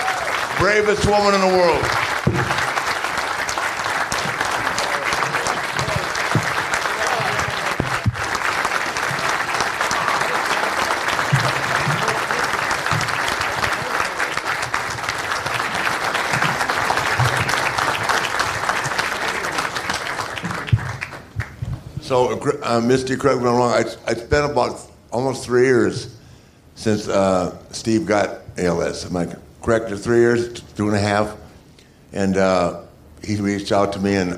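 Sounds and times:
crowd applause: 0.0 - 21.7
speech: 0.6 - 2.6, 22.1 - 26.2, 26.8 - 31.4, 32.1 - 34.3.

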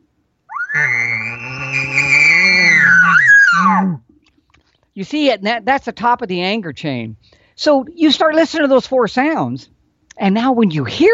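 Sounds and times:
person imitating an elk's guttural lip bawl: 0.5 - 4.0
speech: 5.0 - 11.1.

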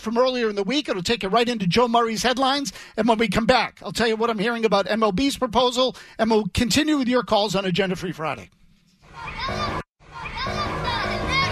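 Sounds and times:
speech: 0.0 - 8.6
children squawking outside: 9.1 - 11.5.

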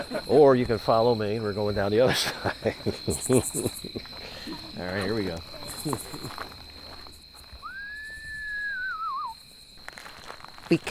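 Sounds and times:
laughter: 0.0 - 0.6, 1.9 - 6.6
speech: 0.0 - 6.6, 10.7 - 10.8
faint steady insect drone: 0.0 - 10.8
person imitating screech owl call: 7.6 - 9.4.

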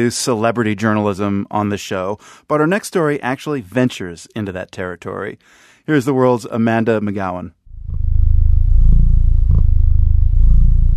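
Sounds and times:
speech: 0.0 - 7.6
cat purring: 7.7 - 10.9.

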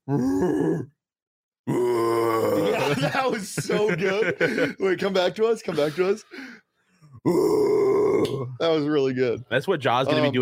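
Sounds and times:
person imitating a grizzly bear growl: 0.0 - 1.0, 1.7 - 3.0, 7.2 - 8.6
speech: 0.1 - 1.0, 3.0 - 6.6, 7.2 - 10.3
laughter: 2.5 - 6.4.

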